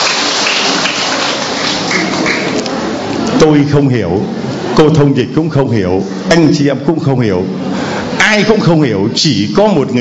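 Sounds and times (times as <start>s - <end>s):
crowd applauding: 0.0s - 2.9s
speech: 3.4s - 9.9s.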